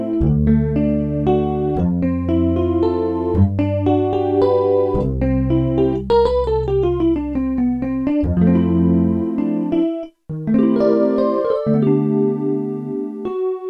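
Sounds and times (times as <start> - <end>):
deep chorus effect from a reverb effects unit: 0.0 - 13.4.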